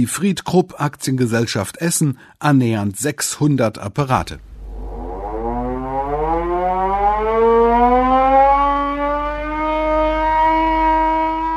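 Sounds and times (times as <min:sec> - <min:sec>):
speech: 0:00.0 - 0:04.5
piercing Krupp factory siren wailing: 0:04.6 - 0:11.5.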